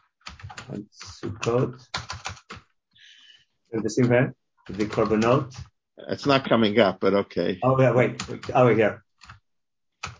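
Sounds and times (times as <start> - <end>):
computer keyboard typing a message into a chat: 0.2 - 2.7, 3.8 - 5.7, 7.9 - 9.4, 10.0 - 10.1
speech: 0.7 - 2.0, 3.7 - 9.0.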